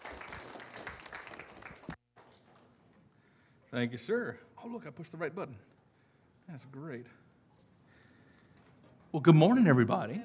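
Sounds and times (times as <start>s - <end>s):
church congregation applauding a guest preacher: 0.0s - 2.4s
speech: 3.8s - 5.8s, 6.5s - 7.2s, 9.1s - 10.2s.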